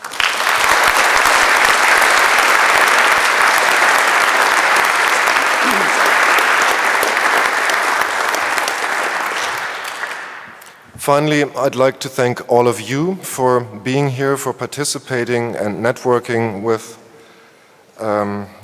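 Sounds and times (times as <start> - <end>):
audience applauding: 0.0 - 10.8
speech: 11.1 - 17.0, 18.0 - 18.6.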